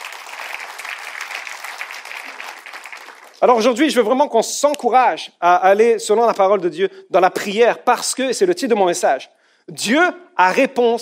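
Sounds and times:
audience applauding: 0.0 - 3.7
speech: 3.4 - 11.0.

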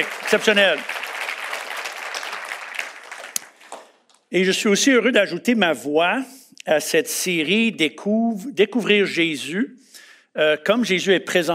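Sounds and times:
speech: 0.0 - 1.0, 4.3 - 11.5
church congregation applause during a service: 0.0 - 4.3.

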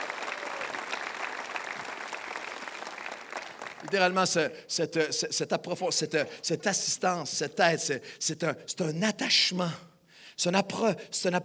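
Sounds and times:
audience applause: 0.0 - 4.2
speech: 3.8 - 11.4.

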